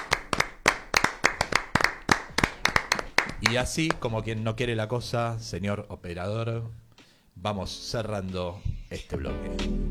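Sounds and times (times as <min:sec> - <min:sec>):
applause: 0:00.0 - 0:04.0
speech: 0:03.4 - 0:06.8, 0:07.4 - 0:09.9.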